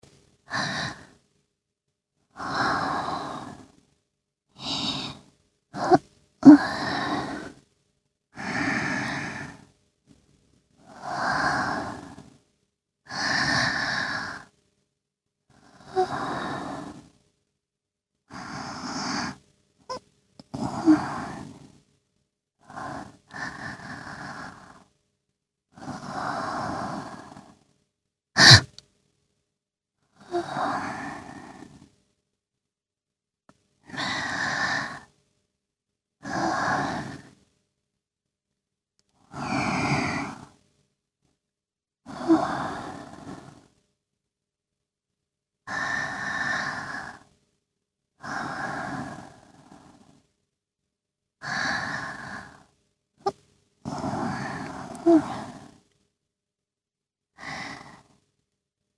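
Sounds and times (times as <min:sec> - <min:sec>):
sleeping breath: 0:00.5 - 0:01.2, 0:02.4 - 0:03.8, 0:04.6 - 0:07.6, 0:08.4 - 0:09.7, 0:10.8 - 0:12.3, 0:13.1 - 0:14.5, 0:15.5 - 0:17.2, 0:18.3 - 0:21.8, 0:22.6 - 0:24.9, 0:25.7 - 0:27.6, 0:30.2 - 0:31.9, 0:33.9 - 0:35.1, 0:36.2 - 0:37.4, 0:39.2 - 0:40.6, 0:42.1 - 0:43.7, 0:45.7 - 0:47.3, 0:48.2 - 0:50.2, 0:51.4 - 0:52.7, 0:53.8 - 0:55.8, 0:57.4 - 0:58.2.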